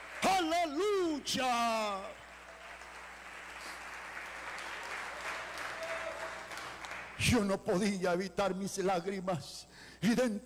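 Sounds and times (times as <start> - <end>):
audience applause: 0.0 - 7.2
speech: 0.4 - 2.2, 7.2 - 10.4.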